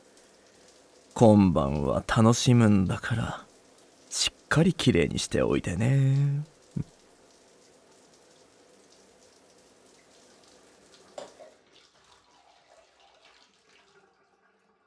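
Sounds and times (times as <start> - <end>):
shower water running: 0.0 - 14.8
speech: 1.2 - 3.5, 4.1 - 6.9.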